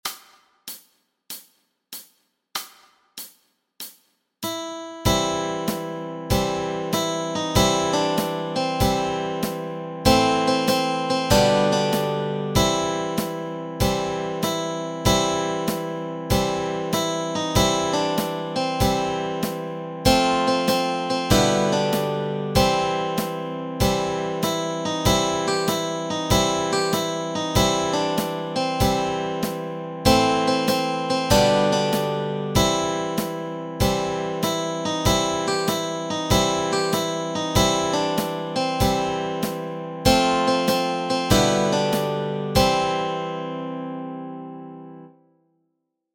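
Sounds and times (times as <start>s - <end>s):
melody and chords: 4.5s - 45.2s.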